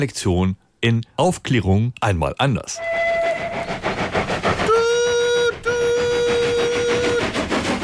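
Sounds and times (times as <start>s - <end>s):
speech: 0.0s - 3.0s
moving train rumbling and clattering: 2.7s - 7.8s
steam locomotive whistle: 2.8s - 7.8s.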